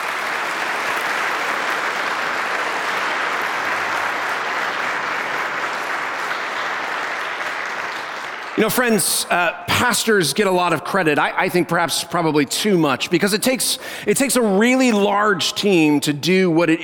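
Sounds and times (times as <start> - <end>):
audience applause: 0.0 - 9.3
speech: 8.6 - 16.8.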